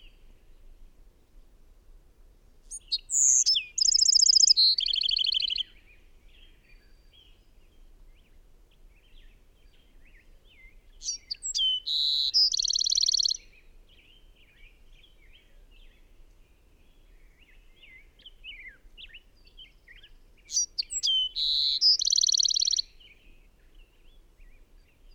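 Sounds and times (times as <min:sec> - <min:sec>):
faint chirps of other birds: 0:00.0 - 0:01.4, 0:02.6 - 0:25.1
bird song with trills and whistle: 0:02.7 - 0:05.7, 0:10.6 - 0:13.5, 0:17.8 - 0:23.1.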